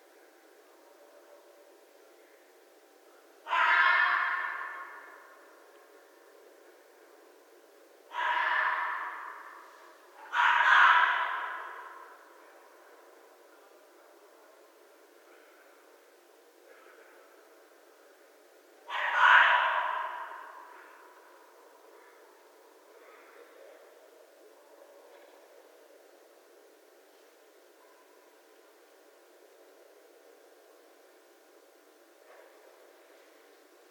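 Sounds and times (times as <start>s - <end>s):
Red fox rasping scream: 3.4s - 5.4s, 8.1s - 12.3s, 18.8s - 21.1s.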